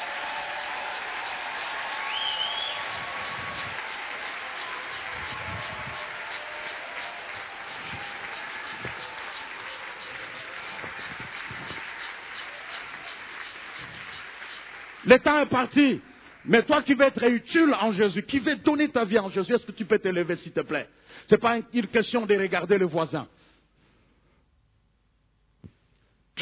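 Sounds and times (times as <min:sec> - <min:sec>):
congregation clapping during a church service: 0:00.0 - 0:17.2
speech: 0:15.1 - 0:23.4.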